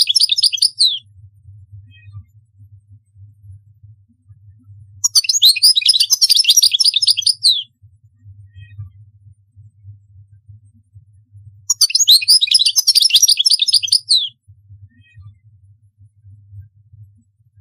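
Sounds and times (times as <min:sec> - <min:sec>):
European goldfinch song: 0:00.0 - 0:01.0, 0:05.0 - 0:07.6, 0:11.7 - 0:14.3.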